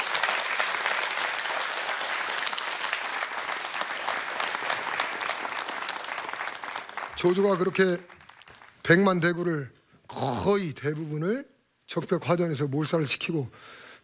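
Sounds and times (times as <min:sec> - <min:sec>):
big applause for a pansori singer and drummer: 0:00.0 - 0:08.8
speech: 0:07.2 - 0:08.1, 0:08.9 - 0:13.8.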